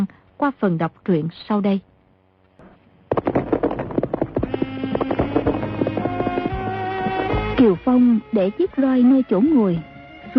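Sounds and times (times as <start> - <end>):
speech: 0.0 - 1.9, 7.6 - 10.3
horse-drawn carriage hoofbeats clopping: 3.1 - 7.8.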